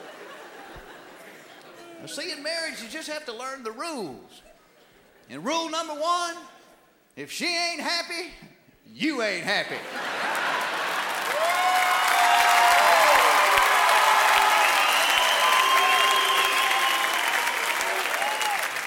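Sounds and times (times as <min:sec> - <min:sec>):
laughter: 0:00.0 - 0:02.0, 0:09.6 - 0:11.4
speech: 0:02.0 - 0:04.5, 0:05.3 - 0:06.6, 0:07.2 - 0:10.1
crowd booing: 0:10.0 - 0:18.8
clapping: 0:10.9 - 0:18.8.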